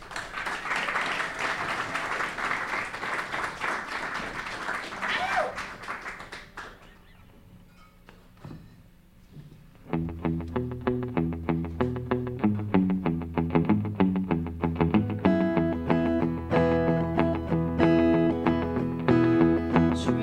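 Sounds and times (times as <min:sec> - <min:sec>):
audience clapping for musical guests: 0:00.0 - 0:07.2
plucked instrument notes: 0:09.9 - 0:20.2.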